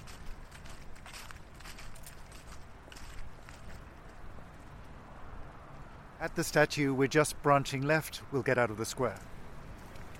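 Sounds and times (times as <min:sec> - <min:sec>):
footsteps walking across a London square: 0:00.0 - 0:04.2
speech: 0:06.2 - 0:09.3.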